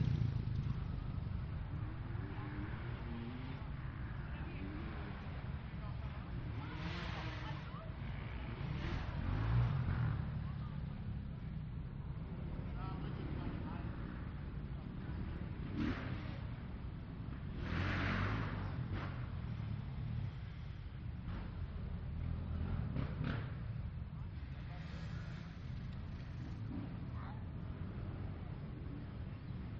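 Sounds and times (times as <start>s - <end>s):
motocross race motorcycles passing: 0.0s - 29.7s.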